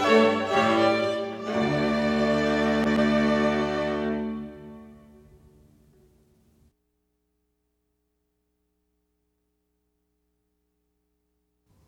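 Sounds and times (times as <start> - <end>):
strings: 0.0 - 6.4.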